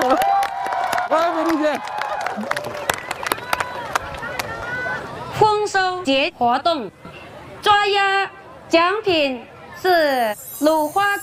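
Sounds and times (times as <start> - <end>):
crowd applause: 0.0 - 5.0
speech: 1.1 - 2.8, 5.9 - 7.0, 7.6 - 11.2.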